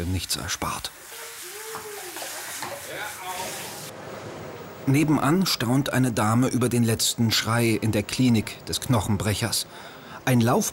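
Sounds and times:
speech: 0.0s - 1.1s, 2.9s - 10.7s
cold shower spraying water: 0.5s - 3.9s
water splashing: 0.9s - 3.9s.

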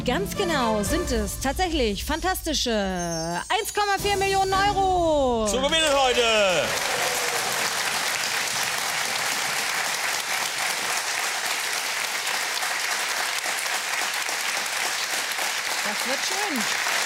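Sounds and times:
speech: 0.0s - 7.1s, 16.0s - 16.9s
studio audience applause: 5.6s - 17.0s.

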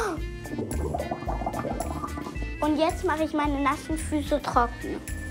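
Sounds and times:
blowing bubbles in bath water: 0.0s - 2.8s
speech: 2.6s - 5.2s.

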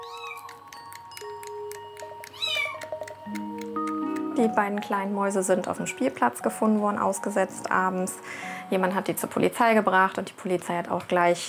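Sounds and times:
young orphaned kittens meowing: 0.0s - 0.6s, 2.3s - 2.9s
speech: 4.4s - 11.4s.

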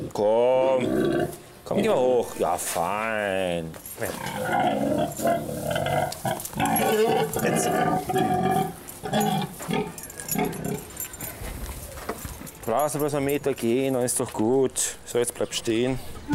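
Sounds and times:
speech: 0.2s - 10.6s, 12.7s - 16.3s
pig grunting and oinking: 0.6s - 2.0s, 4.1s - 10.9s.

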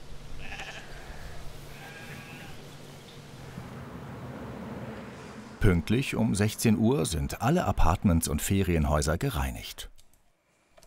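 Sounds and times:
flock of sheep bleating: 0.4s - 2.6s
low shuffling rumble: 3.2s - 8.2s
speech: 5.6s - 9.9s.

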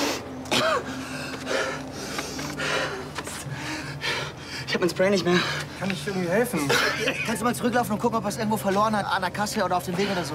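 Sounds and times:
gasping breaths: 0.0s - 6.4s
person coughing: 0.5s - 0.9s
speech: 4.7s - 10.3s
laughter: 6.3s - 8.0s.

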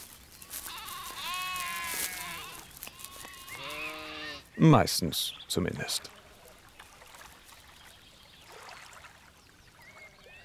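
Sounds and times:
steady outdoor noise: 0.0s - 10.4s
sheep bleating: 0.6s - 4.5s
speech: 4.6s - 6.2s.

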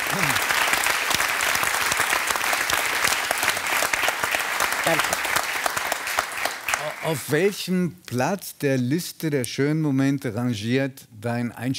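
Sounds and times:
crowd applause: 0.0s - 7.3s
speech: 4.9s - 5.2s, 7.0s - 11.7s.

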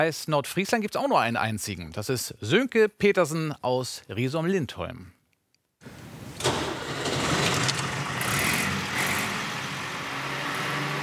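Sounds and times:
speech: 0.0s - 5.2s
vintage Schlüter tractor engine starting and running: 5.8s - 11.0s.

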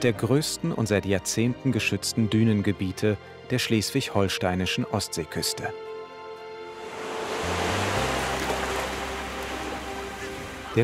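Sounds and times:
speech: 0.0s - 5.9s
waves washing onto a beach: 6.8s - 10.8s.

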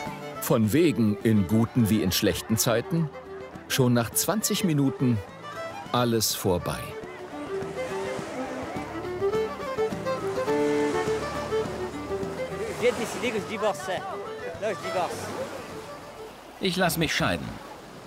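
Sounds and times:
ocean waves: 0.0s - 18.0s
speech: 0.4s - 7.0s, 12.8s - 15.6s, 16.6s - 17.7s.

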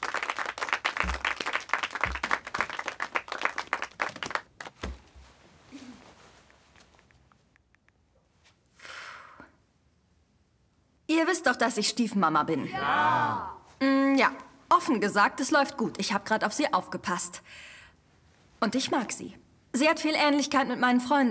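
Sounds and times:
audience applause: 0.0s - 4.8s
speech: 11.2s - 17.7s, 18.6s - 21.2s.

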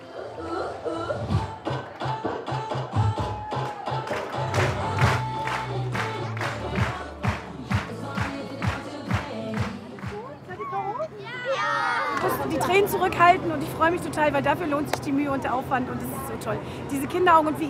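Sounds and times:
circus audience clapping and cheering: 1.8s - 10.3s
murmur of excited voices: 9.4s - 17.6s
children shouting in the crowd: 10.5s - 12.5s
speech: 12.7s - 17.6s.

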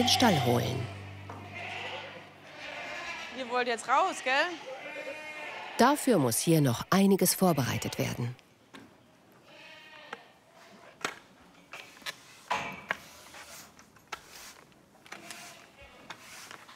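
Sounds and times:
speech: 0.0s - 1.0s, 3.5s - 4.8s, 5.8s - 8.4s
goats bleating in a stall: 0.0s - 6.0s, 7.2s - 8.4s, 9.4s - 10.3s.

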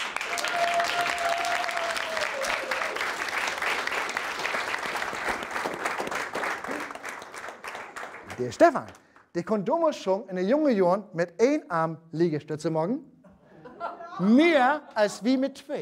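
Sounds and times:
audience applause: 0.0s - 9.0s
speech: 8.4s - 13.1s, 14.2s - 15.8s
laughter: 13.3s - 15.2s.

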